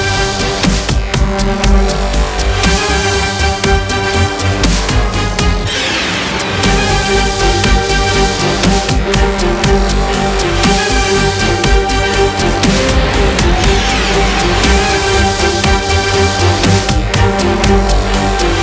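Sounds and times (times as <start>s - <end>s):
orchestral dubstep music: 0.0s - 18.6s.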